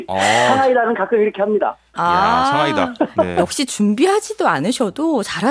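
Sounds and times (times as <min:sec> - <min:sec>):
person's voice imitating a rooster crow: 0:00.1 - 0:00.7
speech: 0:00.1 - 0:05.4.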